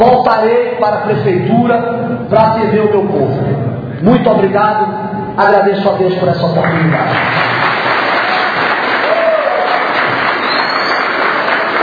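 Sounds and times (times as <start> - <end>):
speech: 0.0 - 7.6
audience applauding a speech in the Câmara Municipal: 6.6 - 11.8.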